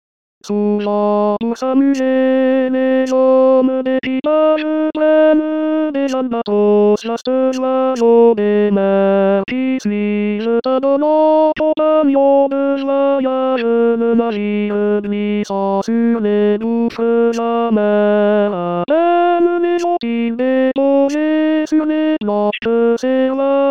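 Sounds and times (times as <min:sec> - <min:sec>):
tenor singing: 0:00.4 - 0:23.6.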